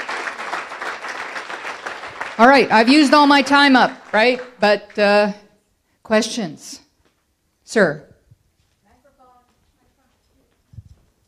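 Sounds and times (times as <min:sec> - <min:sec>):
audience applause: 0:00.0 - 0:05.0
speech: 0:02.4 - 0:05.4, 0:06.0 - 0:06.8, 0:07.7 - 0:08.1.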